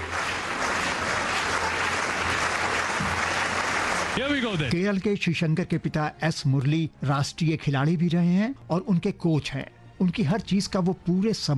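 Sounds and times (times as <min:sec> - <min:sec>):
supporters clapping before long jump: 0:00.0 - 0:04.8
speech: 0:04.2 - 0:11.5.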